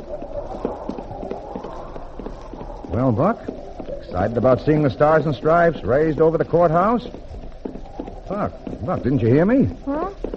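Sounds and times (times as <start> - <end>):
horses' hooves on hard frozen ground: 0.0 - 10.3
speech: 2.9 - 7.3, 8.3 - 10.2.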